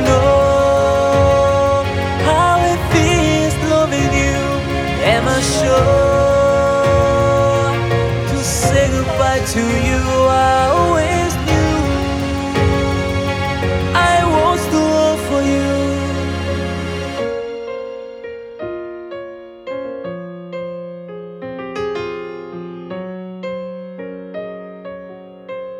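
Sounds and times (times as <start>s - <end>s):
orchestral music: 0.0s - 19.0s.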